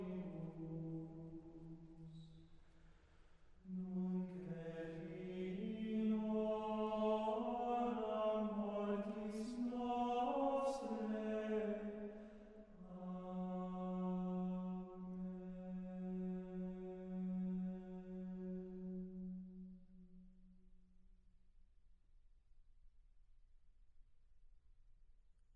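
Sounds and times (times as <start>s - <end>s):
Gregorian chant: 0.0s - 2.3s, 3.6s - 19.7s.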